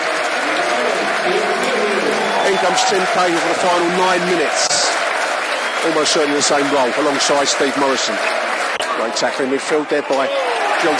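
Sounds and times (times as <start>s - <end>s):
stadium crowd applauding: 0.0s - 10.9s
speech: 2.6s - 4.8s, 5.8s - 10.9s.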